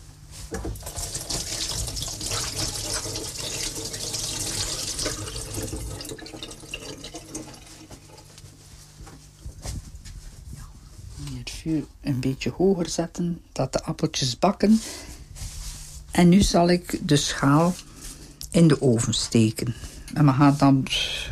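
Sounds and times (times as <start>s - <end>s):
washing hands under running tap: 0.8s - 8.3s
speech: 11.6s - 15.1s, 16.2s - 17.9s, 18.6s - 21.2s.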